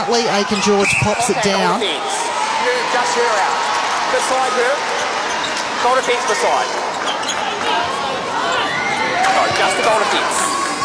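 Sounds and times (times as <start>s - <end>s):
netball crowd roar: 0.0s - 10.8s
speech: 0.1s - 5.0s, 5.8s - 7.4s, 9.6s - 10.5s.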